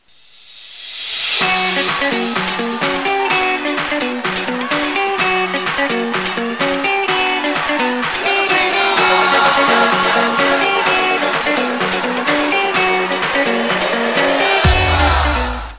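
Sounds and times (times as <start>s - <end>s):
music: 1.0s - 15.7s
laughter: 1.4s - 15.7s.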